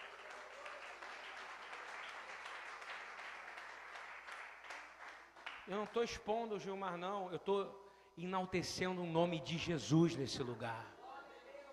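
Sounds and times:
audience applause: 0.0s - 5.7s
speech: 5.7s - 11.0s.

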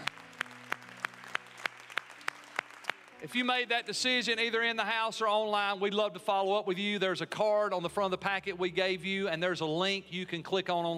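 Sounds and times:
audience applauding: 0.0s - 3.9s
speech: 3.2s - 10.9s.

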